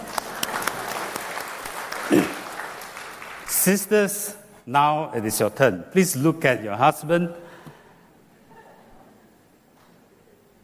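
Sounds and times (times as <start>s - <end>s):
audience applause: 0.0s - 3.7s
speech: 3.6s - 7.5s.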